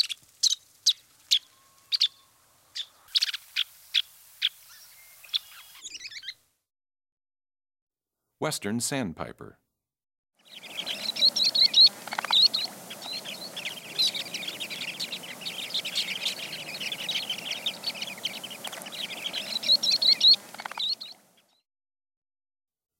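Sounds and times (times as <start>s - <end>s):
Solitary Sandpiper calling: 0.0s - 6.4s, 10.4s - 21.6s
Sanderling calling: 10.5s - 21.4s.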